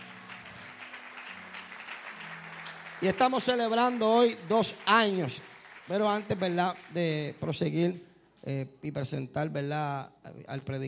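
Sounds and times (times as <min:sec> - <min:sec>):
applause: 0:00.0 - 0:07.8
speech: 0:03.0 - 0:10.8.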